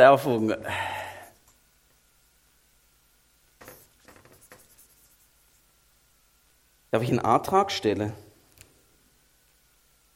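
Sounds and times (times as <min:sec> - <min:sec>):
speech: 0:00.0 - 0:01.0, 0:06.9 - 0:08.2
marker writing on a flipchart sheet: 0:03.6 - 0:05.3.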